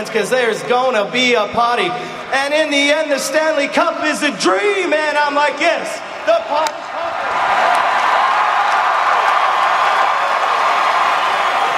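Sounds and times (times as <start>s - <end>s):
speech: 0.0s - 6.8s
large crowd cheering: 6.2s - 11.7s
crowd clapping: 7.6s - 11.7s.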